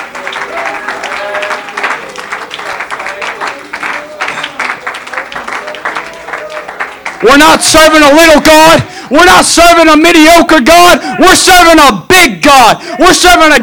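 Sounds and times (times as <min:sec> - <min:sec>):
audience clapping: 0:00.0 - 0:09.3
audience cheering: 0:00.0 - 0:13.6
speech: 0:07.2 - 0:13.6.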